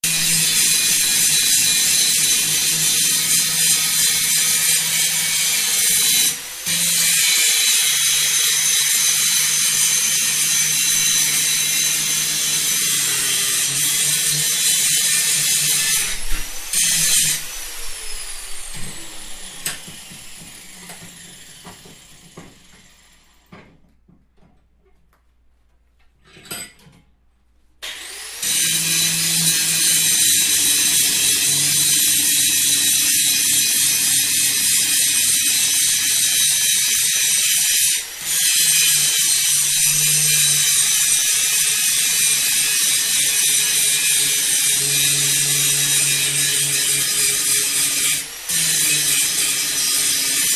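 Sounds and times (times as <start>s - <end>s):
steel grinding in a workshop: 0.0s - 23.4s, 27.8s - 50.5s.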